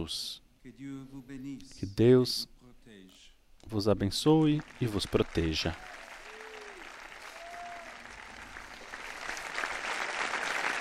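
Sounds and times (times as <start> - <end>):
speech: 0.0 - 6.0
crowd applause: 4.4 - 10.7.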